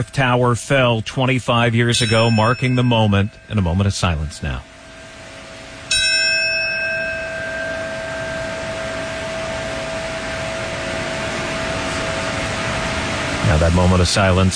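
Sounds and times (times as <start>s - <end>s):
speech: 0.0s - 4.7s, 13.5s - 14.5s
memorial bell tolling: 1.8s - 13.1s.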